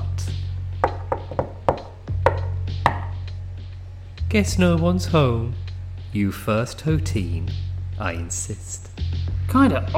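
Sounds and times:
knocking on an old booth door: 0.8 - 3.2
speech: 4.3 - 9.9.

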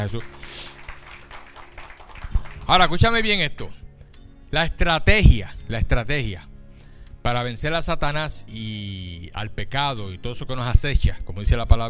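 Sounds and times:
speech: 0.0 - 0.4, 2.7 - 3.8, 4.5 - 6.5, 7.2 - 11.8
audience applauding: 0.0 - 3.0.

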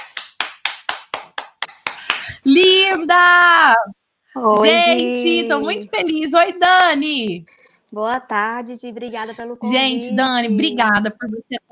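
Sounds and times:
hand claps: 0.0 - 2.4
speech: 2.3 - 11.7.

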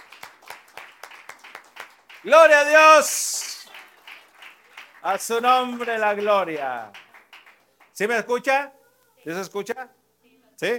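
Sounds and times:
audience rhythmic clapping: 0.0 - 8.2
speech: 2.2 - 3.3, 5.0 - 7.0, 8.0 - 10.0, 10.6 - 10.7.

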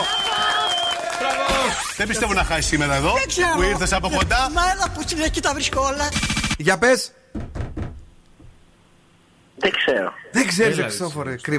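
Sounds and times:
applause: 0.0 - 1.9
speech: 2.0 - 7.4, 9.6 - 11.5.

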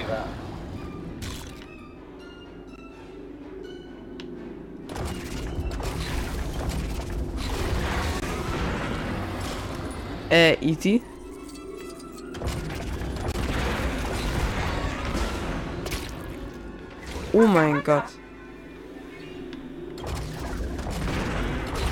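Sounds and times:
shots and booming blasts in the video game Lego Star Wars The Skywalker Saga: 4.9 - 10.3, 12.3 - 17.6, 20.0 - 21.9
speech: 10.3 - 11.1, 17.4 - 18.2.

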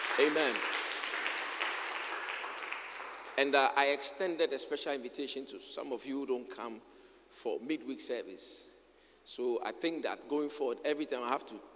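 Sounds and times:
audience clapping: 0.0 - 3.6
speech: 0.2 - 0.8, 3.4 - 8.7, 9.3 - 11.7.

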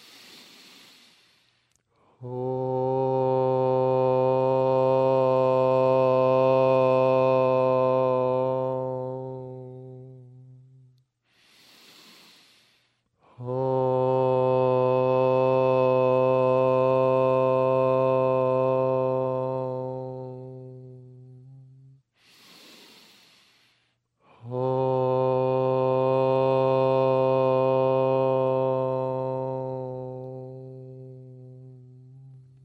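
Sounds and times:
group chanting: 2.2 - 10.2, 13.4 - 20.9, 24.3 - 31.6.

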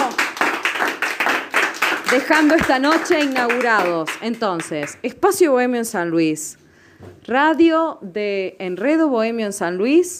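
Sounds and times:
audience applause: 0.0 - 5.0
speech: 2.1 - 10.1.

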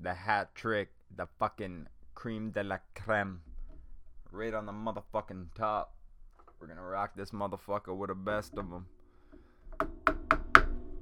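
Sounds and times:
speech: 0.0 - 3.5, 4.3 - 6.0, 6.6 - 9.0
gavel knocking: 8.4 - 11.0.

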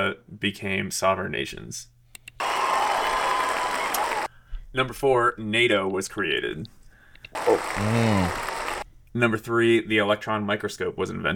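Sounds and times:
speech: 0.1 - 2.6, 4.7 - 8.5, 9.2 - 11.3
applause: 2.4 - 4.3, 7.7 - 8.8.

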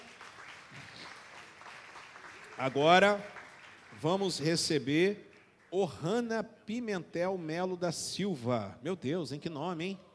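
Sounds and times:
audience applauding: 0.0 - 5.9
speech: 2.6 - 3.3, 4.0 - 10.1.

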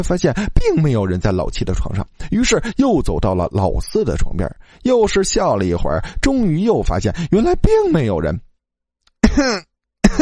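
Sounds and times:
speech: 0.0 - 8.5, 9.3 - 10.2
raspy throaty coughs: 9.2 - 10.2.

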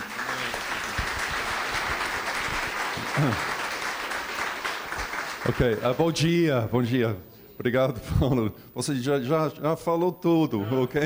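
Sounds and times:
audience applause: 0.0 - 6.2
speech: 3.2 - 3.6, 5.4 - 11.0.

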